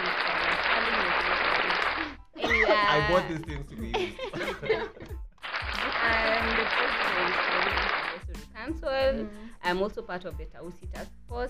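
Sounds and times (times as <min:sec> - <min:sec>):
clapping: 0:00.0 - 0:02.1, 0:05.4 - 0:08.2
laughter: 0:02.4 - 0:05.2
speech: 0:02.9 - 0:05.0, 0:08.7 - 0:11.4.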